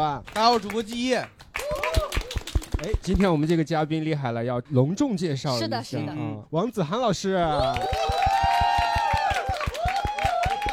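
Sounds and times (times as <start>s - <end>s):
speech: 0.0s - 1.4s, 2.8s - 8.0s
fast steady rhythmic clapping: 0.2s - 3.6s, 7.6s - 10.7s
crowd screaming and cheering: 7.5s - 10.7s.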